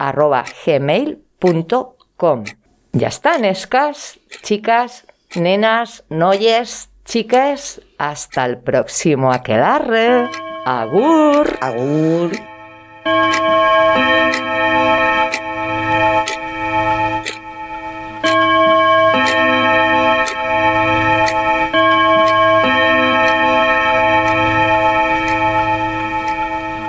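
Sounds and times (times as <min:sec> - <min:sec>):
speech: 0:00.0 - 0:15.0
clock ticking: 0:00.0 - 0:26.8
droning musical chord: 0:09.9 - 0:22.1.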